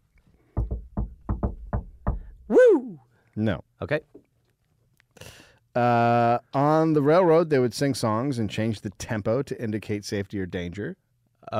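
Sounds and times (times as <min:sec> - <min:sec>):
funky knock on a door: 0:00.6 - 0:02.5
speech: 0:02.5 - 0:04.2, 0:05.8 - 0:11.5.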